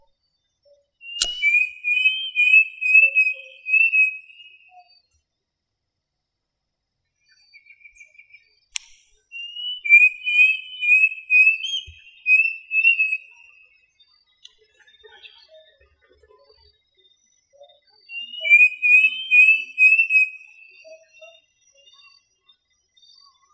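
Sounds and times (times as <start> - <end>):
bird song with high whistled phrases: 0.0 - 5.2, 7.2 - 14.4, 17.6 - 23.5
sharp click: 1.2 - 1.7, 8.8 - 9.2.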